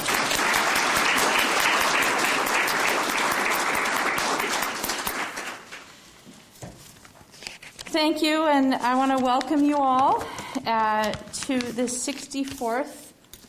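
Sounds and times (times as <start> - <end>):
round of applause: 0.0 - 5.9
speech: 8.0 - 13.0.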